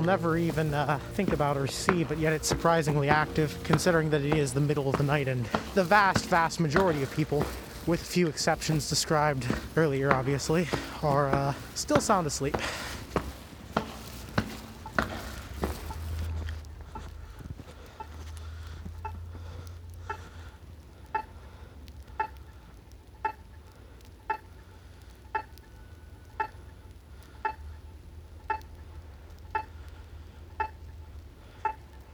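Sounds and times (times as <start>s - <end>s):
speech: 0.0s - 12.9s
crosswalk pedestrian signal ticking: 0.0s - 16.3s, 17.9s - 19.4s, 21.0s - 21.4s, 22.0s - 24.6s, 25.2s - 26.8s, 27.4s - 29.8s, 30.5s - 31.0s.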